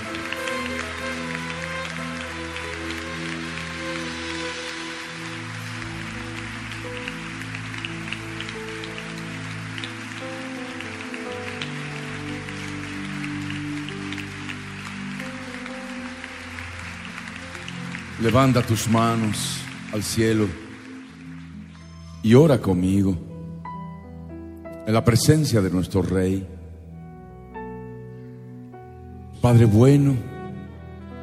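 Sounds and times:
audience applauding: 0.0 - 22.8
speech: 18.2 - 20.6, 22.2 - 23.3, 24.8 - 26.6, 29.4 - 30.3.

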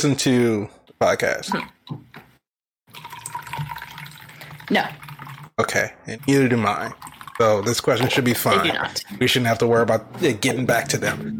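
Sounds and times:
speech: 0.0 - 2.3, 4.7 - 5.0, 5.6 - 11.3
drink pouring: 2.9 - 9.1.

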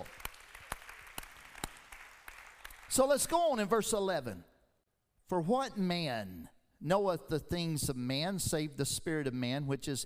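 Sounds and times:
audience clapping hands: 0.0 - 3.4
speech: 2.9 - 4.5, 5.3 - 10.0.

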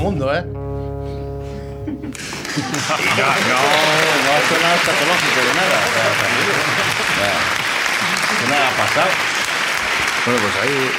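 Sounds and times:
speech: 0.0 - 0.7, 1.8 - 7.6, 8.3 - 9.3, 10.2 - 10.9
laughter: 1.8 - 9.3
crowd applauding: 2.1 - 10.9.

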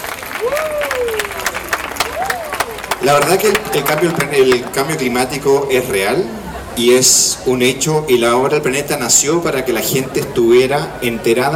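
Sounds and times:
audience applause at an Earth Hour climate-movement event: 0.0 - 5.5
speech: 0.4 - 1.1, 3.0 - 11.5.

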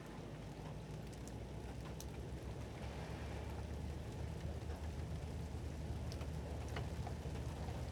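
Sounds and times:
rain over Martha's Vineyard harbor: 0.1 - 7.9
ferry traffic engine rumble: 0.9 - 7.9.

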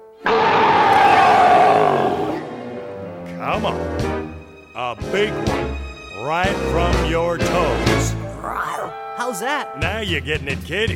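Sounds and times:
voice imitating a big bear growl: 0.8 - 2.4
speech: 3.6 - 4.2, 4.8 - 5.6, 6.2 - 10.9.

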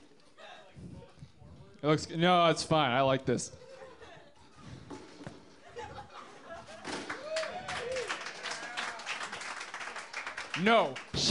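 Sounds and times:
speech: 1.8 - 3.6, 10.6 - 11.2
laughter: 3.5 - 4.7, 5.6 - 7.3
crowd applause: 6.9 - 11.2.

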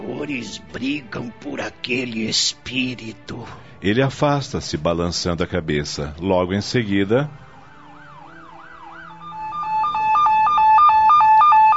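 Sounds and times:
speech: 0.2 - 7.4
police car two-tone siren: 7.5 - 11.7.

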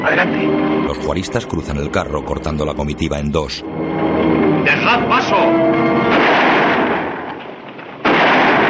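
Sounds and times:
speech: 0.1 - 3.9, 4.7 - 6.2
gunfire from rebels shooting: 6.1 - 8.6.

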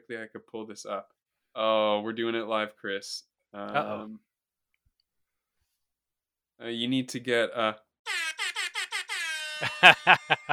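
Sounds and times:
speech: 0.1 - 4.3, 6.6 - 8.2, 9.6 - 10.5
air horn sound effect from phone app: 8.1 - 10.0
laughter: 9.6 - 10.5.

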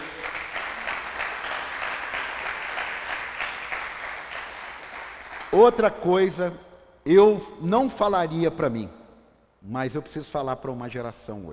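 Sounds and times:
audience applause: 0.0 - 5.6
speech: 5.6 - 9.0, 9.6 - 11.5.

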